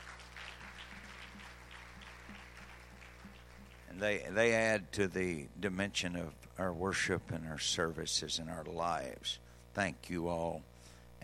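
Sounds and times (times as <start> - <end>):
audience applause: 0.0 - 4.1
speech: 4.0 - 11.2.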